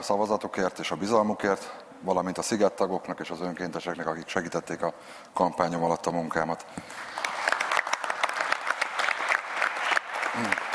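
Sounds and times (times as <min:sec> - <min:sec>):
speech: 0:00.0 - 0:07.2, 0:10.4 - 0:10.6
applause: 0:06.9 - 0:10.7.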